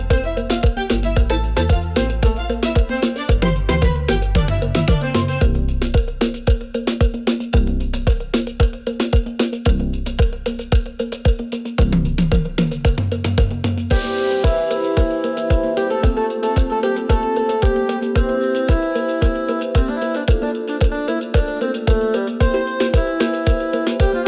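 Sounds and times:
tropical beat: 0:00.0 - 0:24.2.

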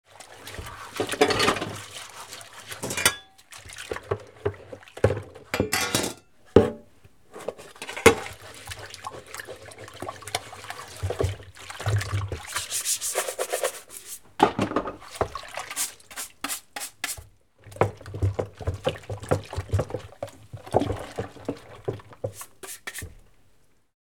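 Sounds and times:
kitchen water during dish washing: 0:00.0 - 0:23.3
dishes clanking: 0:02.8 - 0:03.3, 0:05.6 - 0:06.8.

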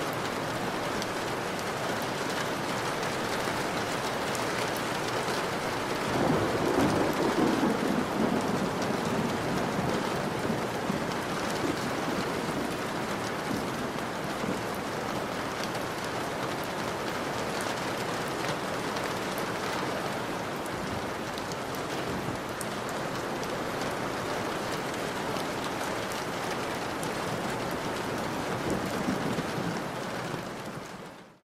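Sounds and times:
rain on window sill: 0:00.0 - 0:31.4
distant thunder: 0:05.5 - 0:14.8, 0:28.0 - 0:30.9.

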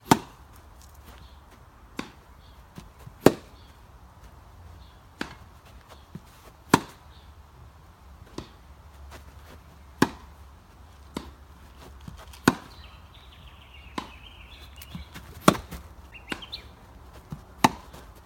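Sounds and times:
tennis rally on a grass court: 0:00.0 - 0:00.4, 0:01.9 - 0:03.7, 0:05.2 - 0:05.5, 0:06.2 - 0:07.2, 0:08.3 - 0:08.6, 0:10.0 - 0:10.4, 0:11.1 - 0:11.4, 0:12.1 - 0:12.9, 0:13.8 - 0:18.2.

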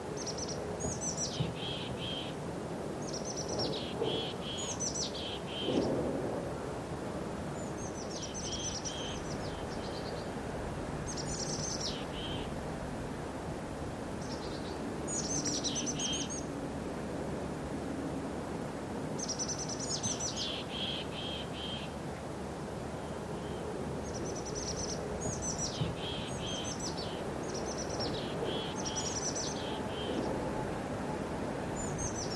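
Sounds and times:
light wind: 0:00.0 - 0:32.3
birds singing: 0:00.1 - 0:02.4, 0:03.0 - 0:06.0, 0:07.5 - 0:10.4, 0:11.0 - 0:12.6, 0:14.2 - 0:16.5, 0:19.2 - 0:22.0, 0:22.9 - 0:30.5, 0:31.8 - 0:32.3.

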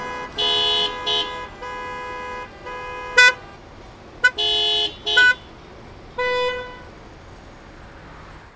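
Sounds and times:
car horn: 0:00.0 - 0:05.6, 0:06.2 - 0:06.9
busy city street traffic: 0:00.0 - 0:08.5.

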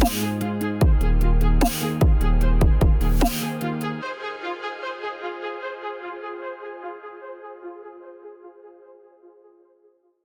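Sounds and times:
trap hip hop beat bass: 0:00.0 - 0:04.0.

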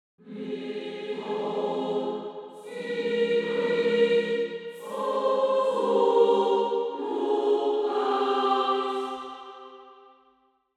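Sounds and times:
angelic choir singing: 0:00.2 - 0:10.3.

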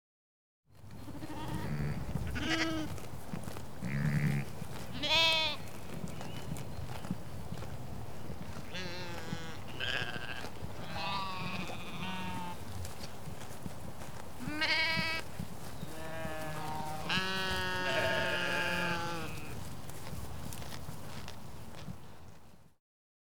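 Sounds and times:
sheep walking on grass on a pasture: 0:00.8 - 0:22.8
sheep on pasture bleating: 0:01.0 - 0:03.0, 0:03.8 - 0:05.7, 0:08.6 - 0:12.6, 0:14.4 - 0:19.6.

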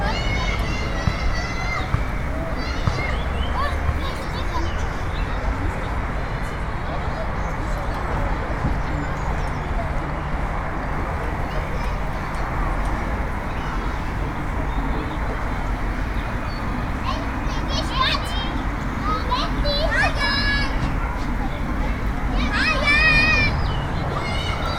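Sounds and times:
kids shouting on a busy playground: 0:00.0 - 0:06.0, 0:10.9 - 0:24.7
kids playing on a busy playground: 0:00.0 - 0:24.7.

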